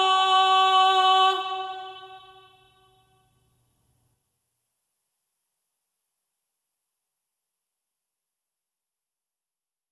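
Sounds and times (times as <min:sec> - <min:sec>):
old Roman chant: 0:00.0 - 0:02.9.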